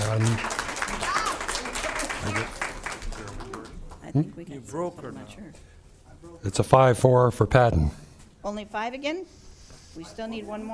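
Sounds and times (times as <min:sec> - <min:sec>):
audience applause: 0:00.0 - 0:04.0
speech: 0:00.2 - 0:00.6, 0:04.1 - 0:10.7.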